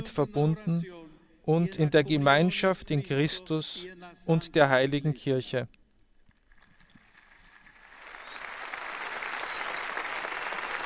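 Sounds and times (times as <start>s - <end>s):
speech: 0.0s - 5.8s
crowd applause at harbour: 7.0s - 10.8s.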